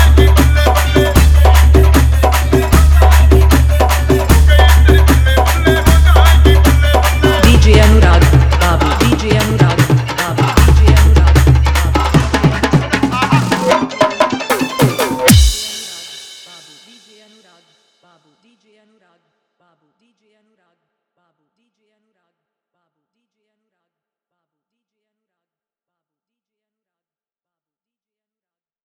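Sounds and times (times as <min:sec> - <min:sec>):
dholki bass dance mix Hindi DJ song: 0:00.0 - 0:16.8.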